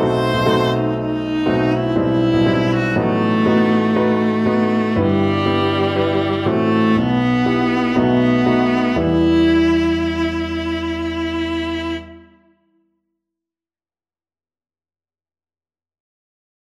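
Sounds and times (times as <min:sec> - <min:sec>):
viola: 0:00.0 - 0:12.6.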